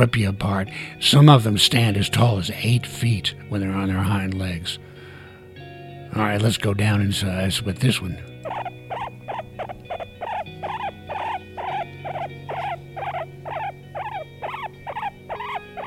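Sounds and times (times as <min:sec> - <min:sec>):
speech: 0:00.0 - 0:04.9, 0:06.1 - 0:08.8
guinea pig squeaking: 0:08.4 - 0:15.8.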